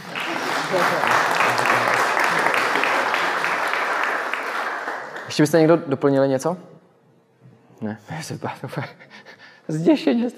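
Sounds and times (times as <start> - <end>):
audience applause: 0.0 - 5.4
speech: 0.7 - 1.2, 5.4 - 6.8, 7.8 - 10.3.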